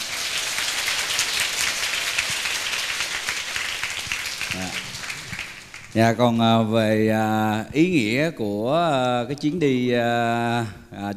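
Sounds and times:
young people's applause honouring a teacher at a spiritual outing: 0.0s - 6.2s
speech: 6.0s - 11.1s.

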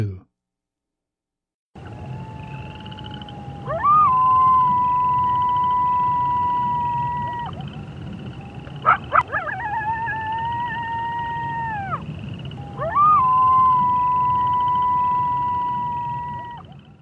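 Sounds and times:
dingoes howling: 1.8s - 17.0s.

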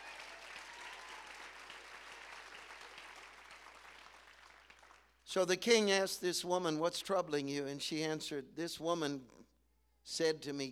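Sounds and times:
audience clapping hands: 0.0s - 5.2s
speech: 5.3s - 9.5s, 10.1s - 10.7s.

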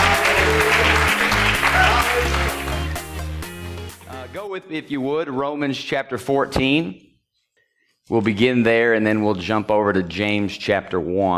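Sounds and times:
audience clapping hands: 0.0s - 3.5s
loud instrumental music with deep bass notes: 0.0s - 4.5s
speech: 4.6s - 7.1s, 8.1s - 11.3s.

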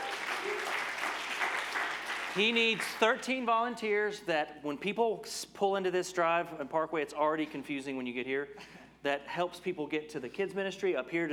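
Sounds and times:
room full of people clapping for a volunteer leader: 0.0s - 3.7s
speech: 2.4s - 11.3s.

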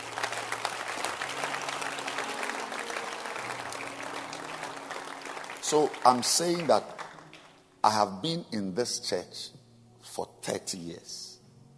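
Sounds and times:
church audience clapping hands: 0.0s - 8.0s
speech: 5.7s - 7.0s, 7.8s - 9.6s, 10.2s - 11.3s.

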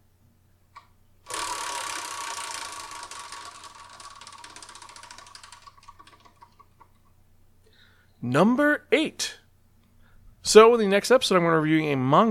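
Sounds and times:
prize wheel spinning with rattling clicks: 1.3s - 7.0s
speech: 8.2s - 9.4s, 10.5s - 12.2s.

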